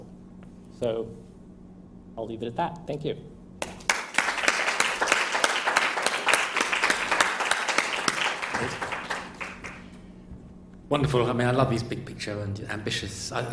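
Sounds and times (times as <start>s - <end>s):
speech: 0.8s - 1.3s, 2.2s - 3.4s, 8.6s - 9.0s, 10.9s - 13.5s
audience applause: 3.7s - 9.9s.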